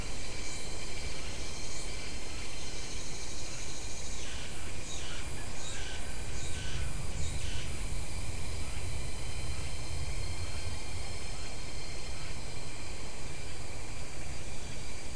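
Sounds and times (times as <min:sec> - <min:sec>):
insects buzzing in chorus: 0:00.0 - 0:15.1.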